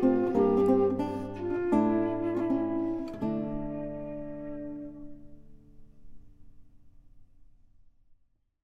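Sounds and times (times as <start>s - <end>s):
instrumental music: 0.0s - 6.3s.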